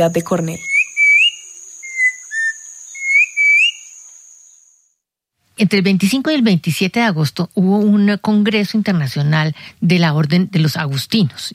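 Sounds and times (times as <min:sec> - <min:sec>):
speech: 0:00.0 - 0:00.7, 0:05.6 - 0:11.5
mountain turpial song: 0:00.0 - 0:04.8.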